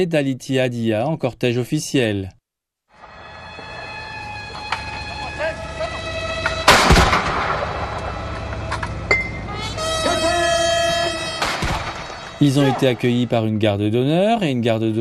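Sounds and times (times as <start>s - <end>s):
speech: 0.0s - 2.4s, 12.4s - 14.9s
military brass band playing sustained chords: 3.0s - 12.5s
cannon boom from a 21-gun salute: 6.6s - 8.4s, 11.4s - 12.3s.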